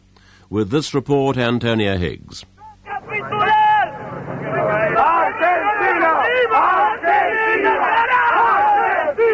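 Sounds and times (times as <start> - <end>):
speech: 0.5 - 2.5
street crowd chanting in protest: 2.8 - 9.3.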